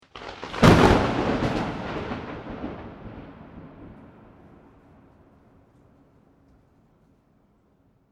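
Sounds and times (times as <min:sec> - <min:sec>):
thunder: 0:00.0 - 0:06.3.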